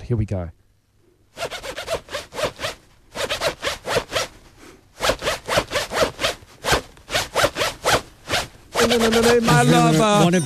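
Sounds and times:
speech: 0:00.1 - 0:00.6, 0:08.9 - 0:10.4
clothing zipper yanked up and down tapping a song's beat: 0:01.4 - 0:04.4, 0:05.0 - 0:10.3.

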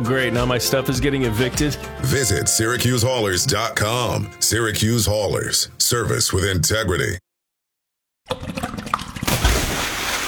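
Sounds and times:
speech: 0:00.0 - 0:07.2, 0:08.3 - 0:08.5
water gushing up from a backed-up drain: 0:08.3 - 0:10.2.

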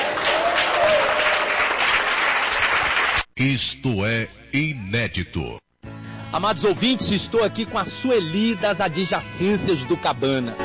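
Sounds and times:
applause: 0:00.0 - 0:03.3
speech: 0:03.4 - 0:05.6, 0:06.3 - 0:10.6.

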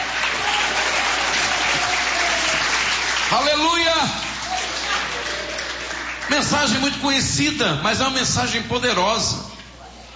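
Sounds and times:
audience applauding: 0:00.0 - 0:07.1
speech: 0:03.3 - 0:04.3, 0:06.3 - 0:09.5.

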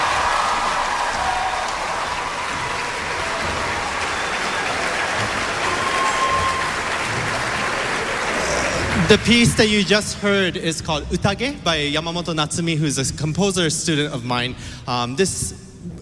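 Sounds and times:
audience applause after orchestra performance: 0:00.0 - 0:10.3
speech: 0:09.1 - 0:15.7.

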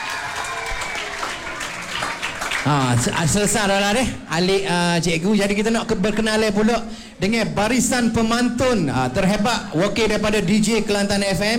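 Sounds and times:
audience applause: 0:00.0 - 0:03.3
speech: 0:02.6 - 0:11.5.

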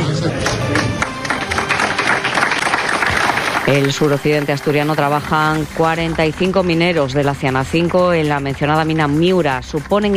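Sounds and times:
applause for miners leaving the pit: 0:00.0 - 0:05.2
speech: 0:03.7 - 0:10.1.

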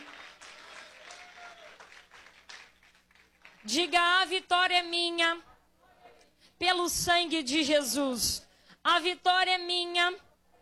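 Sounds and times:
audience clapping: 0:00.0 - 0:04.0
speech: 0:03.6 - 0:05.5, 0:06.6 - 0:10.2.

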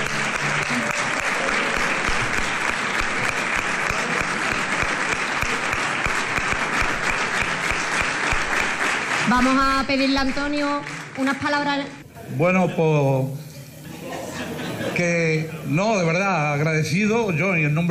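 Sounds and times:
loud audience applause: 0:00.0 - 0:11.8
speech: 0:09.3 - 0:13.4, 0:15.0 - 0:17.8
laughter: 0:13.7 - 0:15.7.

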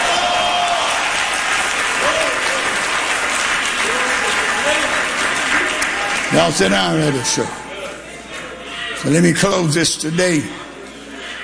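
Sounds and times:
audience clapping hands: 0:00.0 - 0:07.5
speech: 0:06.4 - 0:07.6, 0:09.0 - 0:10.7.

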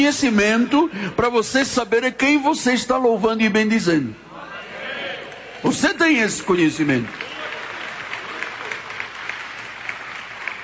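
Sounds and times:
speech: 0:00.0 - 0:04.3, 0:05.6 - 0:07.3
audience applause: 0:06.8 - 0:10.6.

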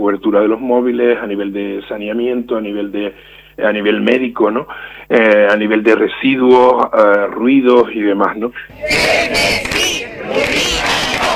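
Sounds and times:
speech: 0:00.0 - 0:10.8
protest crowd shouting chants against a fish farm: 0:08.7 - 0:11.3.

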